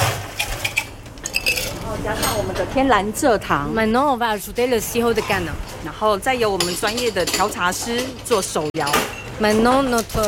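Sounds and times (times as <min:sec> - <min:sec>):
ice cubes tumbling into a drink: 0:00.4 - 0:01.9
speech: 0:02.0 - 0:10.2.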